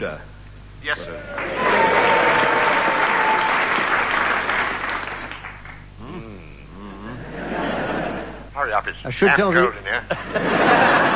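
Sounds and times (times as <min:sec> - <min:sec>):
speech: 0:00.0 - 0:01.7, 0:08.8 - 0:11.1
audience applause: 0:01.2 - 0:05.8
laughter: 0:07.0 - 0:08.5, 0:09.8 - 0:11.1.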